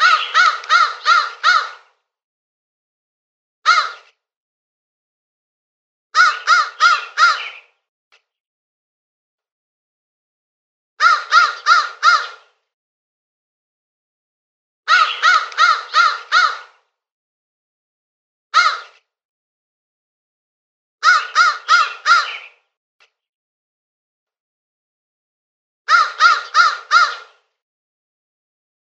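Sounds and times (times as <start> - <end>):
crow cawing with harsh rasping notes: 0.0 - 2.0, 3.7 - 4.1, 6.2 - 7.7, 11.0 - 12.6, 14.9 - 16.8, 18.6 - 19.0, 21.0 - 22.6, 25.9 - 27.4.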